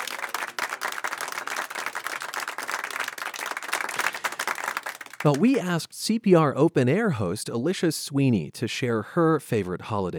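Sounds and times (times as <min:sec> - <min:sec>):
crowd applause: 0:00.0 - 0:05.8
speech: 0:05.2 - 0:10.1.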